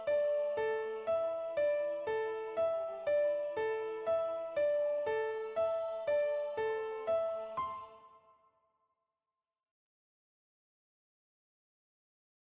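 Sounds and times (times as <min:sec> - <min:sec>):
piano: 0:00.0 - 0:08.6
soprano singing: 0:04.9 - 0:08.3.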